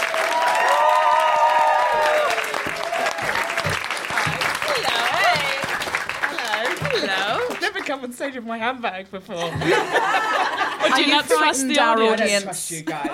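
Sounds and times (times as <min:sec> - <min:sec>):
audience applause and cheering: 0:00.0 - 0:07.9
laughter: 0:06.3 - 0:07.7, 0:09.4 - 0:11.6, 0:12.7 - 0:13.1
speech: 0:08.0 - 0:13.1.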